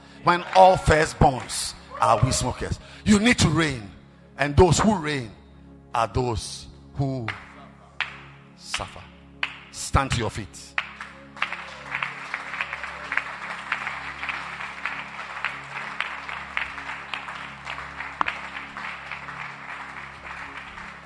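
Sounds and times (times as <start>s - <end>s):
speech: 0.2s - 7.5s, 8.6s - 9.0s, 9.8s - 10.7s
audience clapping: 0.3s - 2.5s, 7.3s - 9.8s, 10.7s - 21.0s.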